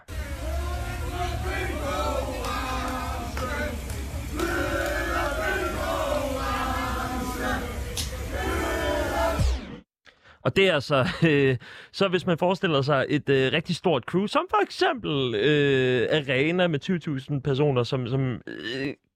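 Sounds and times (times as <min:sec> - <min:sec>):
concert crowd shouting and chanting: 0:00.0 - 0:09.8
laughter: 0:00.1 - 0:09.3, 0:11.0 - 0:11.6
speech: 0:10.5 - 0:19.0.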